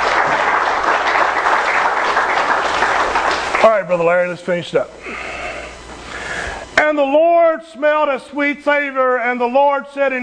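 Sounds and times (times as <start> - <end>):
audience applause: 0.0 - 4.2
speech: 3.8 - 5.3, 6.9 - 10.2.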